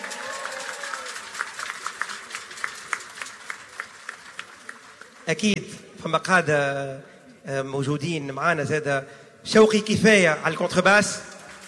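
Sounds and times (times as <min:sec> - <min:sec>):
warm audience applause: 0:00.0 - 0:05.5
speech: 0:05.3 - 0:11.3.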